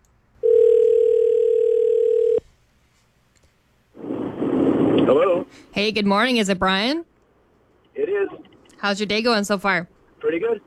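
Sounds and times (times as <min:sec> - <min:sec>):
telephone dial tone: 0:00.4 - 0:02.4
speech: 0:05.1 - 0:07.1, 0:08.2 - 0:10.6.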